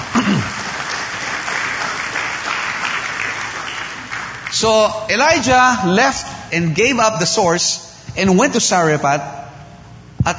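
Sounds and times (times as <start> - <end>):
church congregation clapping during a sermon: 0.0 - 5.8
speech: 0.3 - 0.6, 4.6 - 9.4.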